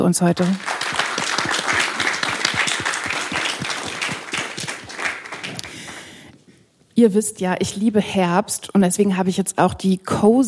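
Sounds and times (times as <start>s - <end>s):
speech: 0.0s - 0.7s, 7.0s - 10.4s
audience applause: 0.4s - 6.2s.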